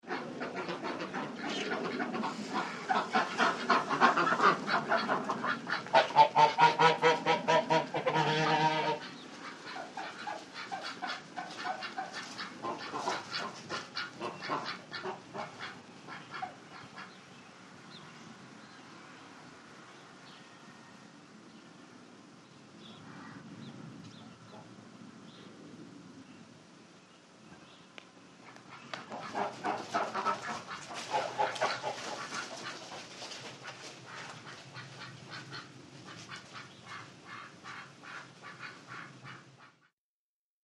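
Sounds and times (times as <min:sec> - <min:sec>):
goose: 0:00.0 - 0:17.2, 0:28.4 - 0:39.9
small group of ducks: 0:00.0 - 0:17.3, 0:28.4 - 0:39.9.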